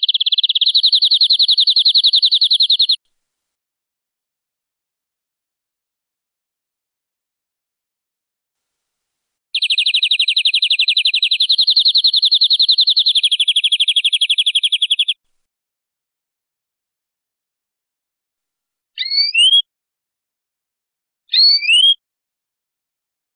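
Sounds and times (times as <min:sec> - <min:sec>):
European greenfinch buzzy trill: 0:00.0 - 0:03.0, 0:09.6 - 0:15.2, 0:19.0 - 0:19.6.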